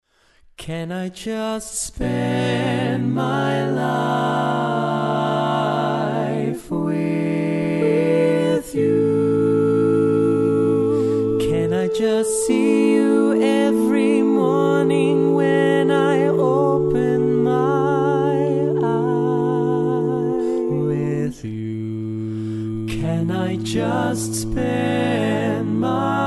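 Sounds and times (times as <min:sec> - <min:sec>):
barbershop tags sung by all parts: 0:00.6 - 0:26.2.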